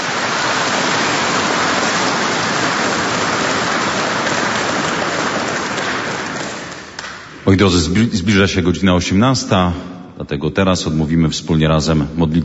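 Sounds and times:
audience applause: 0.0 - 7.4
speech: 7.5 - 12.4.

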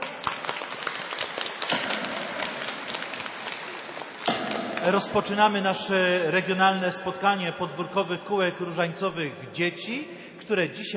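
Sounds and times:
crowd clapping: 0.0 - 5.6
speech: 4.8 - 10.9.

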